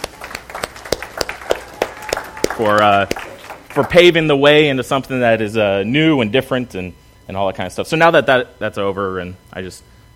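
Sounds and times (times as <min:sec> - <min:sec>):
audience applause: 0:00.0 - 0:04.1
speech: 0:02.6 - 0:10.1.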